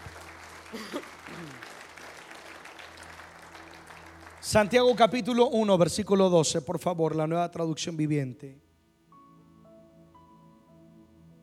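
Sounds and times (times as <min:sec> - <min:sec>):
audience applause: 0:00.0 - 0:05.5
speech: 0:00.7 - 0:01.7, 0:04.4 - 0:08.6.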